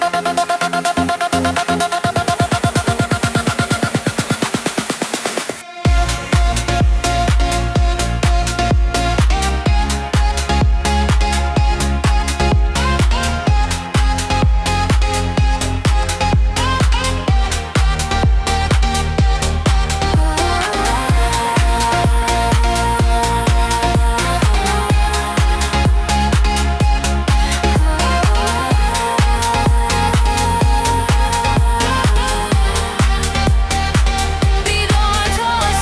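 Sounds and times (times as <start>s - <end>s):
pumping house beat: 0.0s - 35.8s
rising synth leads: 0.0s - 35.8s.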